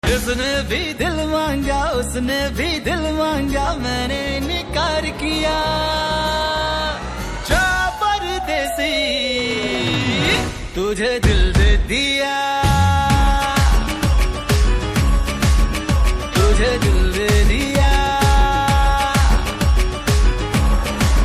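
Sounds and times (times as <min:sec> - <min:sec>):
man's voice: 0:00.0 - 0:21.1.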